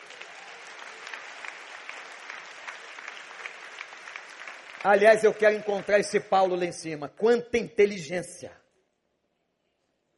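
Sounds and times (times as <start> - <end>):
audience applause: 0.0 - 6.4
speech: 4.8 - 8.6.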